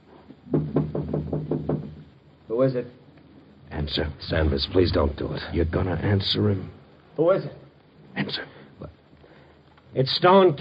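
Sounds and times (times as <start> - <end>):
knocking on a door: 0.5 - 2.1
speech: 2.5 - 3.0, 3.8 - 7.6, 8.2 - 8.9, 10.0 - 10.6.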